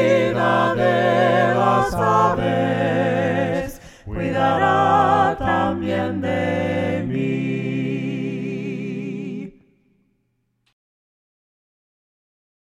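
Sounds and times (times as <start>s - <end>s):
voices singing hymns a cappella: 0.0s - 9.8s.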